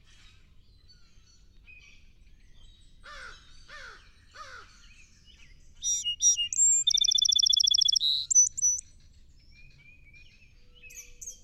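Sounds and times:
song sparrow song: 5.4s - 8.8s.

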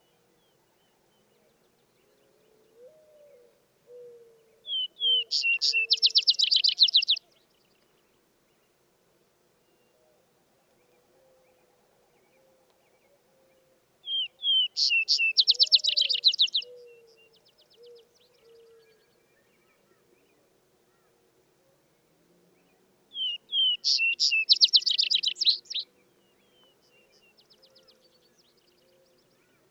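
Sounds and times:
vesper sparrow song with trill: 4.0s - 7.3s, 14.0s - 18.7s, 23.1s - 29.6s
speech: 5.3s - 5.8s.

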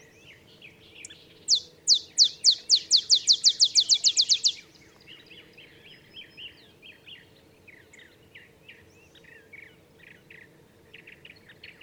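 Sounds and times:
olive sparrow chip trill song: 1.0s - 4.6s
other birds chirping: 1.0s - 5.0s.

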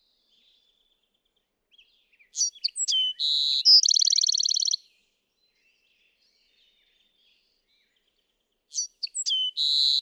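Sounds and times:
Bewick's wren singing trill: 2.2s - 4.8s, 8.7s - 9.9s.

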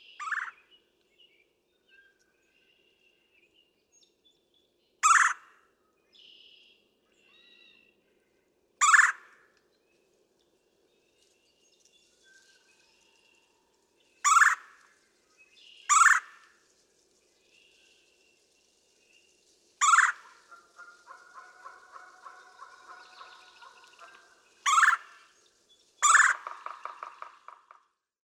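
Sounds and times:
red-bellied woodpecker churring calls: 0.2s - 0.6s, 5.0s - 5.4s, 8.8s - 9.2s, 14.2s - 14.7s, 15.9s - 16.4s, 19.8s - 25.3s, 26.0s - 27.8s.

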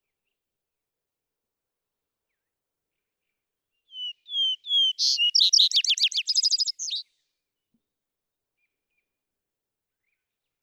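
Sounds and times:
vesper sparrow song: 3.9s - 7.0s.

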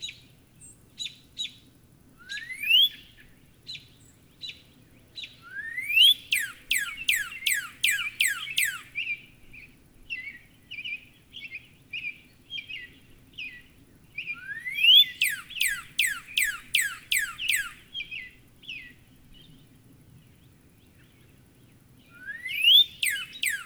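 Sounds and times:
Northern cardinal singing steep downslurred whistles: 5.5s - 9.0s, 14.4s - 17.8s, 22.2s - 23.6s.

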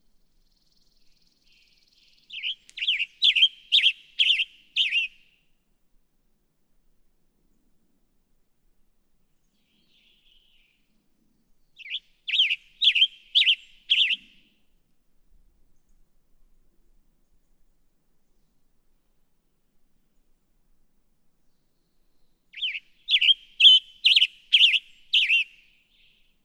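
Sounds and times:
Western Tanager: 2.3s - 5.2s, 11.8s - 14.4s, 22.5s - 26.2s.

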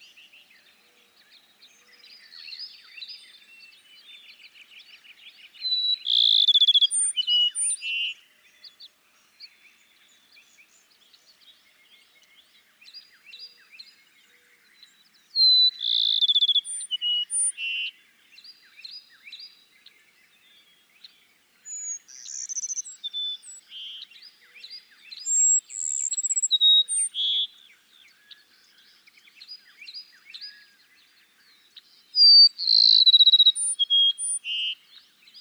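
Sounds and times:
Cassin's sparrow song: 0.0s - 35.3s
background chirping from other birds: 0.0s - 35.3s.

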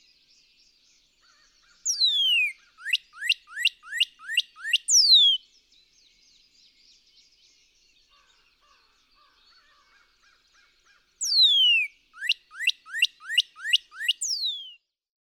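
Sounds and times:
Northern cardinal whistled song: 1.9s - 5.4s, 11.2s - 14.8s.

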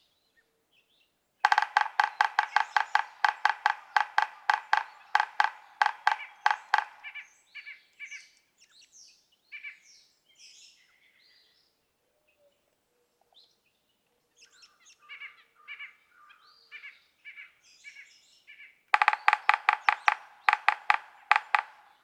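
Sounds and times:
yellow-bellied sapsucker nasal mewing notes: 1.5s - 7.3s, 19.0s - 22.0s.

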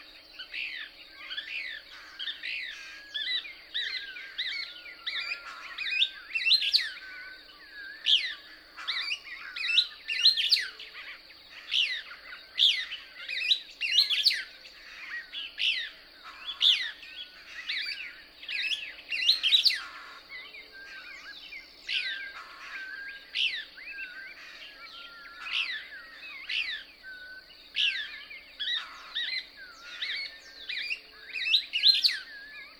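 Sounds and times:
Couch's Kingbird twittering song: 0.0s - 32.7s.

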